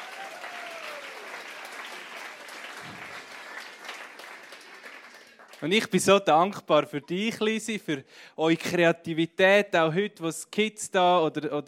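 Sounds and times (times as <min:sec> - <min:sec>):
audience applause: 0:00.0 - 0:05.8
speech: 0:05.6 - 0:11.6.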